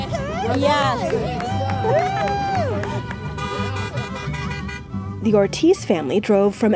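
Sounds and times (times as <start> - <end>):
family cheering outdoors for graduates: 0.2 - 4.2
scattered claps: 0.5 - 4.8
speech: 5.3 - 6.7.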